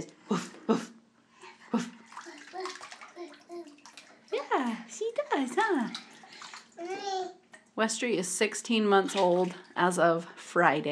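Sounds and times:
water sloshing and splashing in a bathtub: 1.4 - 10.9
small child babbling: 2.2 - 3.8, 6.8 - 7.4
speech: 7.8 - 10.9.

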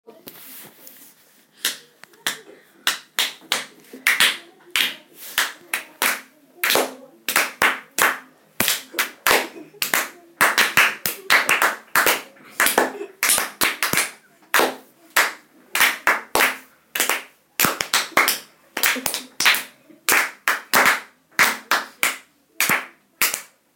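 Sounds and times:
clapping: 1.6 - 23.5.

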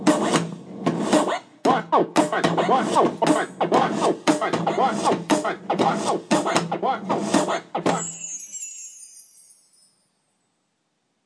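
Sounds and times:
vinyl record beat: 0.0 - 8.1.

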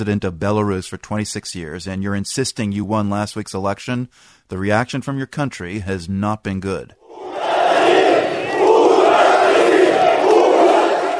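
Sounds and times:
speech: 0.0 - 7.0
factory workers heckling and shouting: 7.1 - 11.1.

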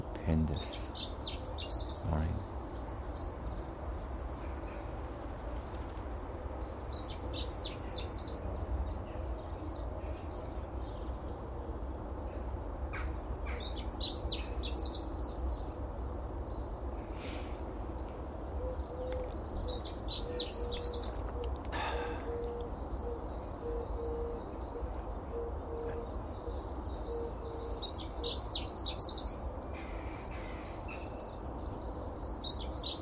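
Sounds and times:
speech: 0.2 - 0.8
blackbird chirping: 0.2 - 12.0, 12.9 - 33.0.

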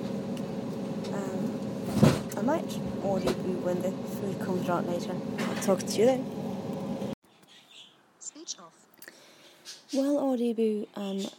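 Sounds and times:
airplane cabin ambience: 0.0 - 7.2
speech: 2.4 - 6.4, 10.0 - 11.3.

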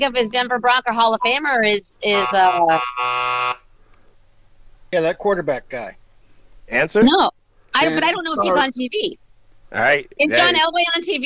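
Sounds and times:
speech: 0.0 - 3.6, 4.9 - 6.0, 6.7 - 11.2
quiz timer buzzer during a sports trivia game: 2.1 - 3.7.

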